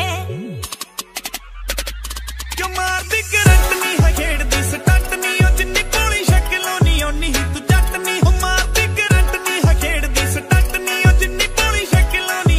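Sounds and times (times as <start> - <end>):
Punjabi ringtone: 0.2 - 12.5.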